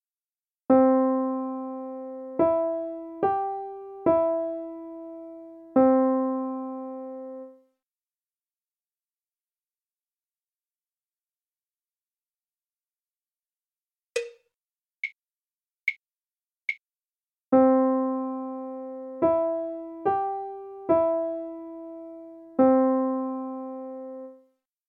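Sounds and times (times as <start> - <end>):
melody: 0.7 - 7.6, 17.5 - 24.3.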